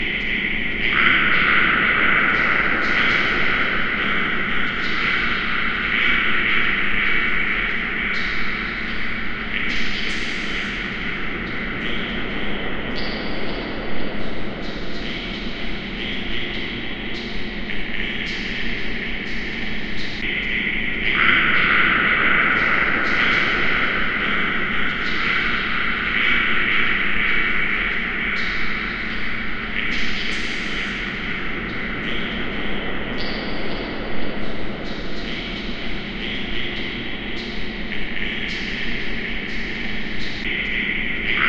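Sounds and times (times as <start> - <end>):
ambience: 0.0 - 41.4.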